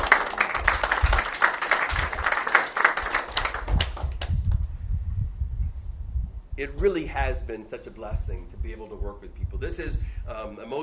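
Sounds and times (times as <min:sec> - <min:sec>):
audience applauding: 0:00.0 - 0:04.3
low rumble: 0:03.7 - 0:10.5
speech: 0:06.6 - 0:10.8.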